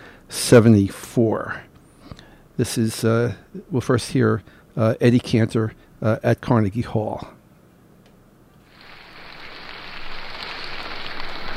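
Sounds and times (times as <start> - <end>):
speech: 0.5 - 7.4
large audience applauding in a concert hall: 8.8 - 11.5.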